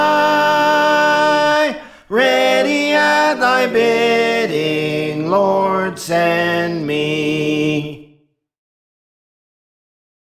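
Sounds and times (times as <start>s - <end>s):
soprano singing: 0.0s - 8.0s.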